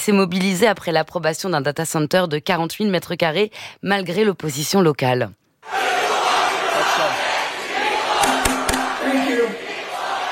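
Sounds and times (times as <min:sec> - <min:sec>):
speech: 0:00.0 - 0:05.8
protest crowd chanting a slogan: 0:05.6 - 0:10.3
sharp claps or bangs: 0:08.1 - 0:09.1.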